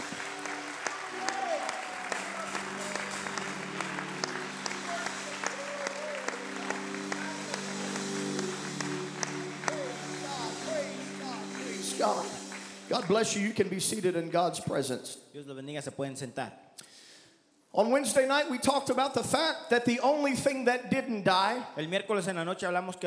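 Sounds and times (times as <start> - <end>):
audience clapping hands in praise: 0.0 - 14.0
speech: 12.9 - 16.6, 17.8 - 23.0.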